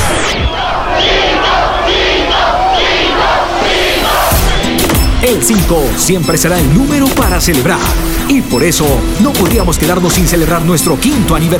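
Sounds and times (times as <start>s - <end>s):
large stadium crowd applauding and roaring: 0.0s - 5.3s
speech: 5.4s - 11.5s.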